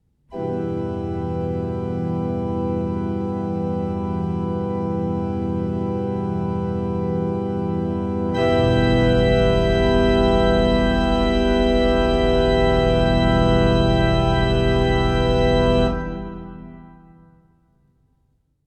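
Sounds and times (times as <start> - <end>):
chords: 0.3 - 17.5.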